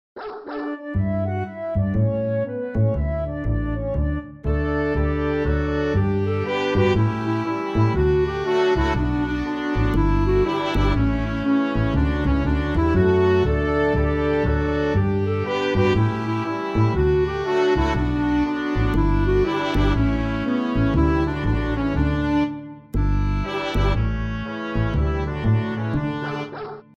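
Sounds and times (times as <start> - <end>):
instrumental music without vocals: 0.5 - 26.9.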